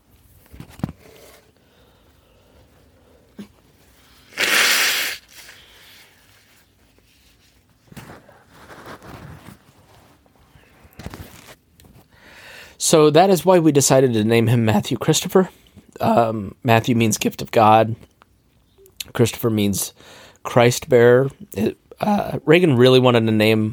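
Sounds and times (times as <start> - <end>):
person blowing nose: 4.1 - 6.3
speech: 12.9 - 18.1, 19.2 - 23.7.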